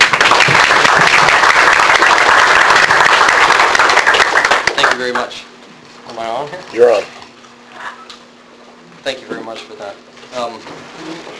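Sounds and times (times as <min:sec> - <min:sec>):
audience applause at the Dallas Philosophers Forum welcoming a guest speaker: 0:00.0 - 0:05.3
speech: 0:06.8 - 0:07.1, 0:09.1 - 0:11.3.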